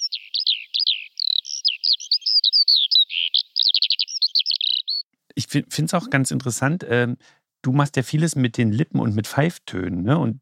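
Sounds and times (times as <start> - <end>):
songbird singing: 0.0 - 5.1
speech: 5.5 - 10.3.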